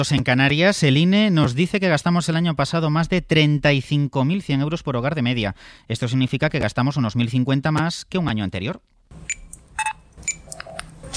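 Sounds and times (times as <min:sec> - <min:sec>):
speech: 0:00.0 - 0:09.9
supermarket checkout beeps: 0:09.3 - 0:11.1.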